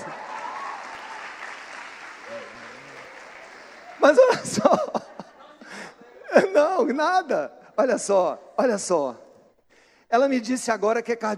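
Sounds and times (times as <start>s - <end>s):
audience applause: 0.0s - 5.9s
laughter: 2.1s - 7.0s
speech: 4.0s - 5.1s, 6.4s - 9.2s, 10.1s - 11.3s.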